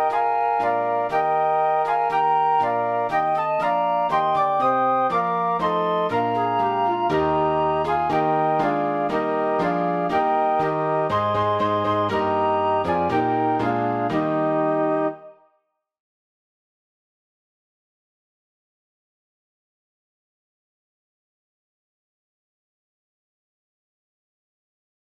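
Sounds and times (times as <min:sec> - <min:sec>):
piano: 0:00.0 - 0:15.5
flute: 0:00.0 - 0:15.6.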